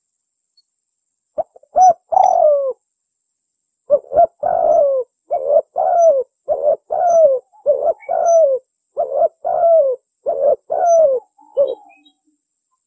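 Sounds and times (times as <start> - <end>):
bird giving low hollow cooing notes: 1.4 - 2.8, 3.9 - 12.2.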